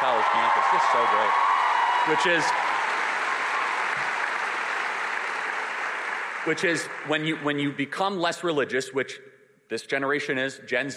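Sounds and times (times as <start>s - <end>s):
audience applause: 0.0s - 7.4s
speech: 0.2s - 2.7s, 6.4s - 10.9s.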